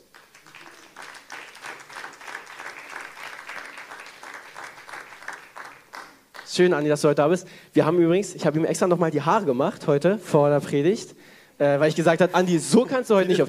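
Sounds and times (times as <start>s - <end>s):
audience applause: 0.0s - 6.6s
speech: 6.6s - 13.4s.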